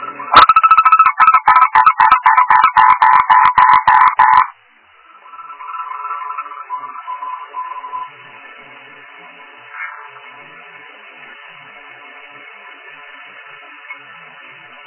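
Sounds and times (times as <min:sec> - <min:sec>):
frog croaking: 0:00.3 - 0:04.5.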